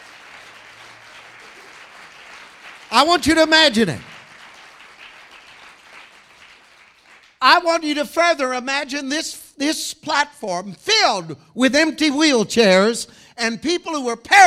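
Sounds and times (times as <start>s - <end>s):
church audience clapping: 0.0s - 7.6s
man speaking loudly: 2.9s - 4.1s, 7.4s - 14.4s
speech: 3.0s - 4.1s, 7.6s - 14.4s.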